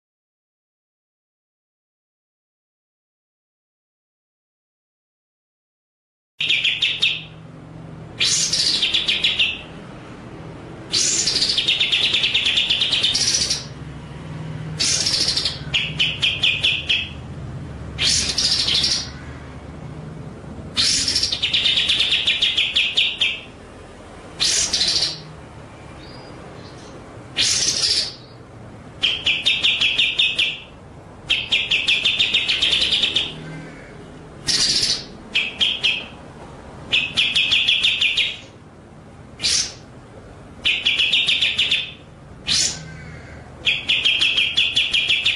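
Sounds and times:
White-rumped shama singing rasping and rattling: 0:06.4 - 0:07.4, 0:08.1 - 0:09.9, 0:10.8 - 0:13.8, 0:14.8 - 0:17.3, 0:17.9 - 0:19.5, 0:20.7 - 0:23.6, 0:24.4 - 0:25.4, 0:26.0 - 0:38.6, 0:39.4 - 0:40.0, 0:40.6 - 0:45.3.

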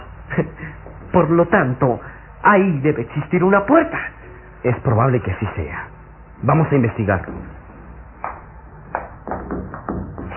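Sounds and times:
speech: 0:00.4 - 0:07.6
knocking on a hollow-sounding wall: 0:07.2 - 0:07.6, 0:08.3 - 0:10.3.

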